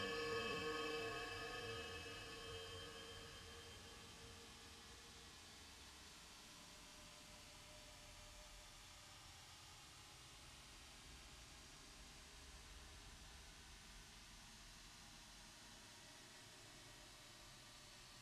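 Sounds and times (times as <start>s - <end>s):
ambient music: 0.0s - 3.8s.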